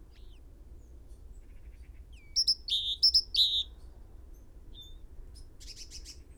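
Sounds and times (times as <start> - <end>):
great tit calls: 2.2 - 3.7.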